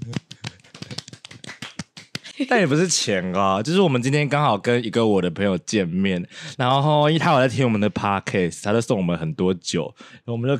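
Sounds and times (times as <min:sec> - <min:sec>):
round of applause: 0:00.0 - 0:02.4
speech: 0:02.4 - 0:10.5.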